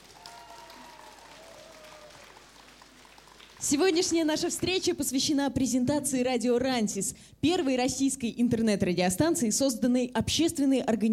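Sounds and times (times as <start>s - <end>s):
enthusiastic audience applause: 0.0s - 4.9s
speech: 3.6s - 11.1s.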